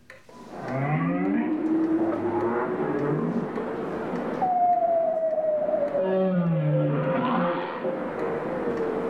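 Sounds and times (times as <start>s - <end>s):
bowhead whale singing underwater: 0.4s - 3.4s, 4.4s - 9.0s.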